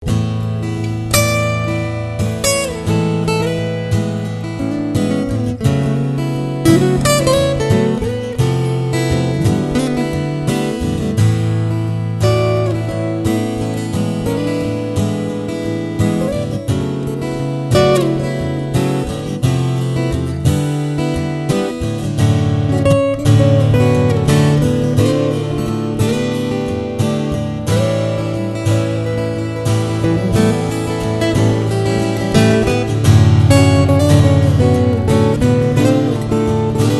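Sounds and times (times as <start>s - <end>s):
acoustic guitar: 0.0s - 36.9s.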